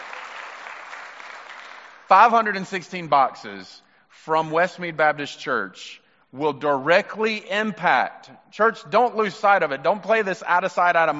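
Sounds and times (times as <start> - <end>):
audience clapping: 0.0 - 2.5
speech: 2.1 - 11.1.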